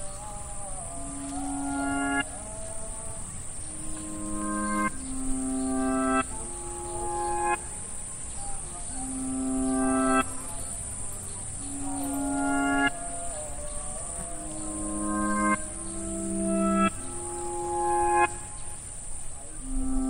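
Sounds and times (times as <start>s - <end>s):
crickets chirping: 0.0s - 20.0s.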